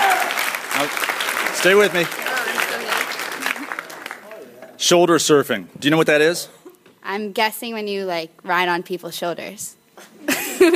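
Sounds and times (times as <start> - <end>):
crowd round of applause: 0.0 - 4.6
speech: 0.8 - 2.3, 4.8 - 10.7.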